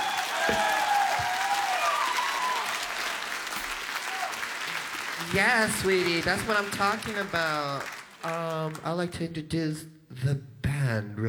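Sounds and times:
whistles: 0.0s - 4.9s
concert crowd cheering: 0.0s - 9.0s
concert audience clapping: 0.0s - 9.2s
speech: 5.3s - 11.2s.

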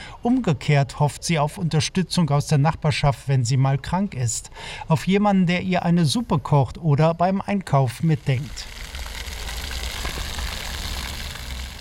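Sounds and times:
speech: 0.2s - 8.8s
splashing water of a fountain: 8.0s - 11.7s.

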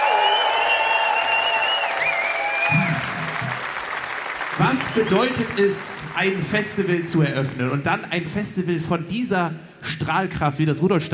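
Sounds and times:
sustained high whistle-like tone: 0.0s - 2.9s
festival audience applauding and cheering at the Rudolstadt Open Air: 0.0s - 7.7s
speech: 4.6s - 11.1s.

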